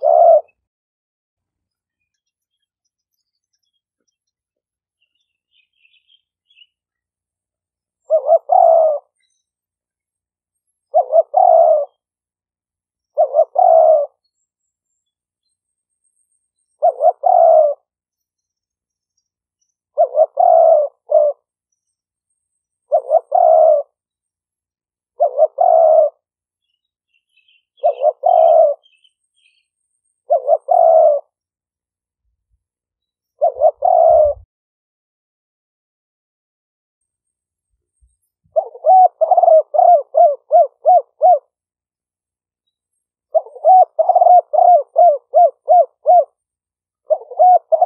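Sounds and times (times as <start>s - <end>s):
spotted dove cooing: 0.0s - 0.7s, 8.0s - 9.2s, 10.8s - 12.1s, 13.1s - 14.2s, 16.8s - 17.9s, 20.0s - 21.5s, 22.9s - 24.0s, 25.1s - 26.3s, 27.7s - 29.1s, 30.2s - 31.4s, 33.4s - 34.5s, 38.5s - 41.6s, 43.3s - 47.8s.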